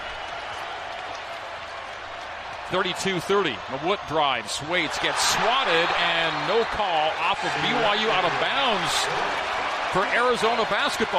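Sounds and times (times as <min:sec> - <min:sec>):
crowd cheering at an Arizona versus BYU college basketball game: 0:00.0 - 0:11.1
people clapping: 0:00.0 - 0:11.1
speech: 0:02.7 - 0:11.1.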